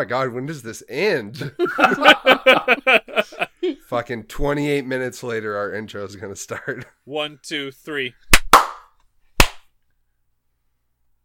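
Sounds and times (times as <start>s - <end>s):
speech: 0.0s - 8.4s
laughter: 1.4s - 3.8s
group clapping in unison: 8.4s - 8.8s, 9.4s - 9.6s.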